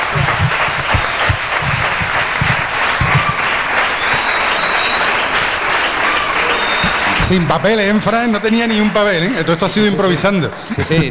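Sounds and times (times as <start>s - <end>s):
large audience applauding: 0.0s - 11.0s
laughter: 0.0s - 11.0s
speech: 7.3s - 11.0s.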